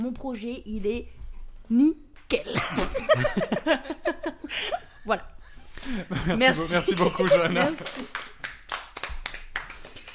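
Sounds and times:
speech: 0:00.0 - 0:08.3
laughter: 0:02.8 - 0:04.9, 0:05.8 - 0:08.4
sparse scattered clapping from a small audience: 0:06.8 - 0:10.1.

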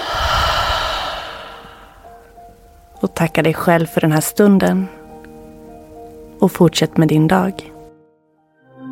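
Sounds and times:
breathing out through the mouth: 0:00.0 - 0:02.2
speech: 0:03.0 - 0:05.0, 0:06.4 - 0:07.7.

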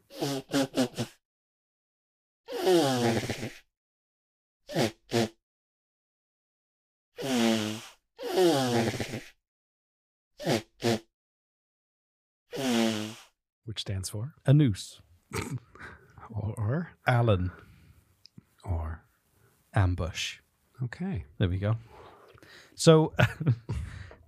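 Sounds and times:
man blowing his nose: 0:00.0 - 0:01.2, 0:02.5 - 0:03.7, 0:04.7 - 0:05.4, 0:07.2 - 0:09.4, 0:10.4 - 0:11.1, 0:12.5 - 0:13.4
speech: 0:13.8 - 0:17.7, 0:18.6 - 0:19.0, 0:19.7 - 0:24.0.

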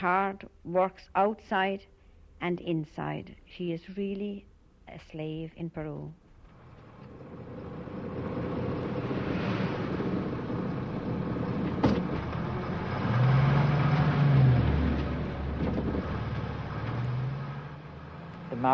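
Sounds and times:
speech: 0:00.0 - 0:06.2
bus engine and road noise passing house: 0:06.3 - 0:18.7.

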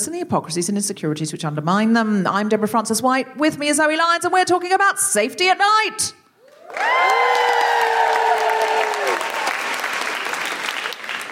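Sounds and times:
speech: 0:00.0 - 0:07.6
live audience whooping cheer at a recorded comedy panel show: 0:06.4 - 0:11.0
live audience at a recorded comedy panel show applauding: 0:06.4 - 0:11.3.

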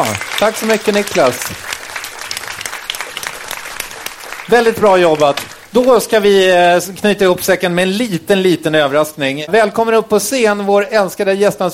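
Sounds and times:
speech: 0:00.0 - 0:01.8, 0:04.5 - 0:11.7
audience applause: 0:00.0 - 0:06.3.

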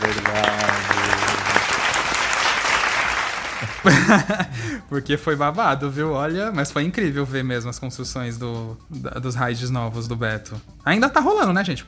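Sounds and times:
laughter: 0:00.0 - 0:02.1, 0:03.6 - 0:04.8
applause from a group of people: 0:00.0 - 0:04.4
speech: 0:03.8 - 0:11.8.

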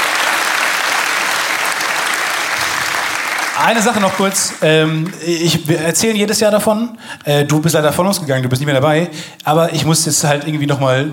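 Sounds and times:
audience applause: 0:00.0 - 0:05.3
speech: 0:03.6 - 0:11.1.

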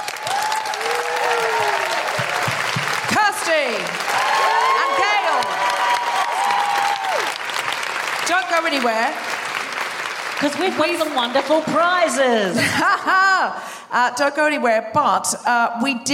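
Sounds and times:
audience applause: 0:00.0 - 0:12.2
speech: 0:08.7 - 0:09.3, 0:10.4 - 0:16.1.

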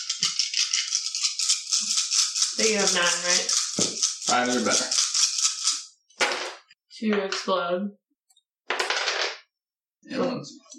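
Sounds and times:
handful of dice rattling: 0:00.0 - 0:06.5, 0:08.7 - 0:09.4
speech: 0:02.6 - 0:05.0, 0:07.0 - 0:08.0, 0:10.1 - 0:10.7.

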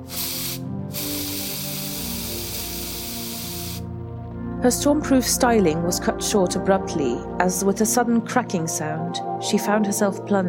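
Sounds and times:
hairspray can spraying: 0:00.0 - 0:03.8
speech: 0:04.6 - 0:10.4.

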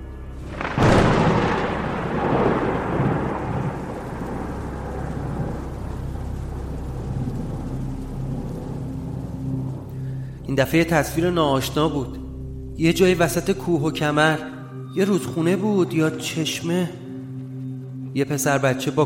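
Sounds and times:
steady rain hissing: 0:00.3 - 0:13.7
very loud crack of thunder: 0:00.4 - 0:09.9
speech: 0:10.6 - 0:12.2, 0:12.8 - 0:17.0, 0:18.1 - 0:19.0.

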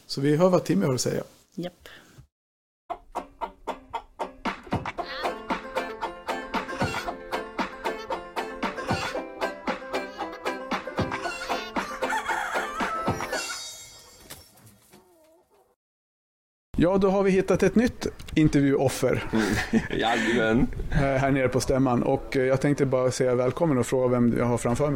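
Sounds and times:
speech: 0:00.1 - 0:02.0, 0:16.8 - 0:24.9
flock of chickens clucking: 0:02.9 - 0:15.8
rooster crowing: 0:11.2 - 0:13.7
laughter: 0:19.1 - 0:20.6.

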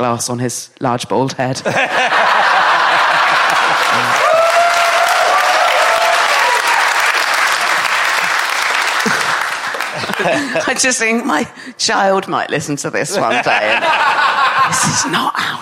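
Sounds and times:
speech: 0:00.0 - 0:02.5, 0:10.2 - 0:15.6
laughter: 0:01.6 - 0:04.5, 0:07.6 - 0:11.2, 0:13.1 - 0:15.2
audience applause: 0:02.0 - 0:11.0.

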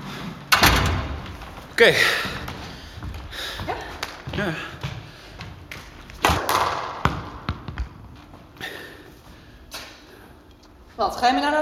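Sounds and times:
speech: 0:01.8 - 0:02.4, 0:04.4 - 0:04.7, 0:11.0 - 0:11.5
racket striking a punctured flat ball: 0:06.2 - 0:08.0.

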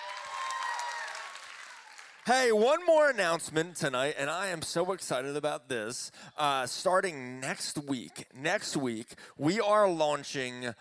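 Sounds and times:
faint cheering: 0:00.0 - 0:03.1
audience clapping: 0:00.0 - 0:03.2
speech: 0:02.3 - 0:10.7.

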